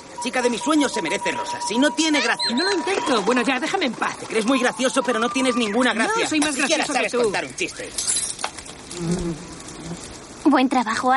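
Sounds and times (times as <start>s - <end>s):
hiss: 0.0s - 11.1s
speech: 0.2s - 8.2s, 9.0s - 9.5s, 10.5s - 11.1s
queen bee buzzing: 8.8s - 10.3s.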